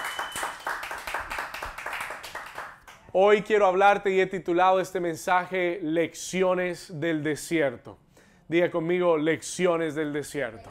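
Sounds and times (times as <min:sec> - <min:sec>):
audience clapping: 0:00.0 - 0:03.1
speech: 0:03.1 - 0:10.6.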